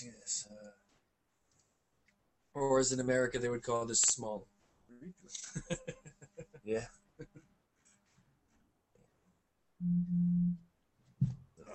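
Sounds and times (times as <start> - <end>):
speech: 0.0 - 0.8, 2.6 - 7.4, 9.8 - 10.6
laughter: 5.4 - 7.4
cell phone beeping: 9.8 - 10.6
short thump: 11.2 - 11.5.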